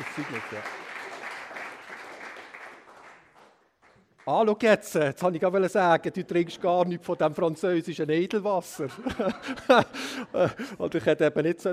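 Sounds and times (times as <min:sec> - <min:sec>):
audience applause: 0:00.0 - 0:04.0
speech: 0:00.1 - 0:00.9, 0:04.3 - 0:11.7
laughter: 0:08.6 - 0:11.3.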